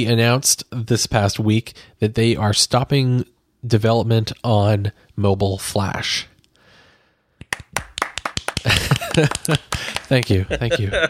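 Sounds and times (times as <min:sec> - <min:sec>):
speech: 0:00.0 - 0:06.3, 0:08.6 - 0:11.0
hand clapping applause: 0:07.4 - 0:10.4
laughter: 0:08.5 - 0:11.0.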